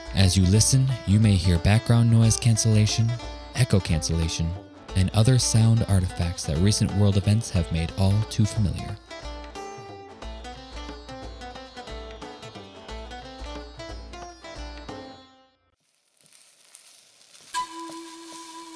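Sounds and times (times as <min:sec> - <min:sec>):
rhythmic music with pulsing bass: 0:00.0 - 0:15.0
speech: 0:00.1 - 0:09.1
food sizzling while frying: 0:15.8 - 0:18.7.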